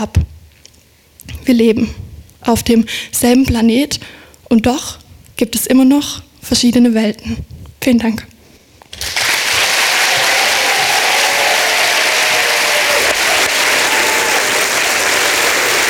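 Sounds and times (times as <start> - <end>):
speech: 0.0 - 0.4, 1.5 - 8.3
audience applause: 8.9 - 15.8.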